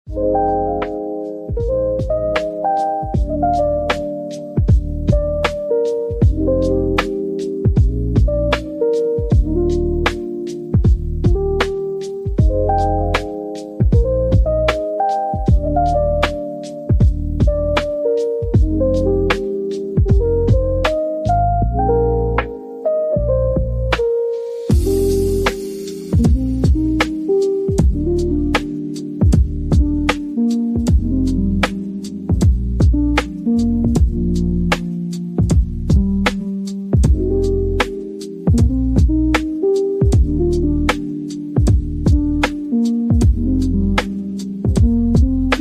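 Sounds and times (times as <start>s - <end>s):
lo-fi beat: 0.1s - 45.5s.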